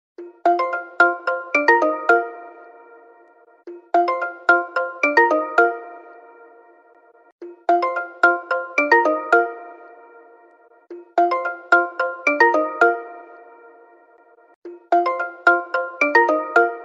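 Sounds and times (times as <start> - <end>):
ringtone: 0.2 - 16.8.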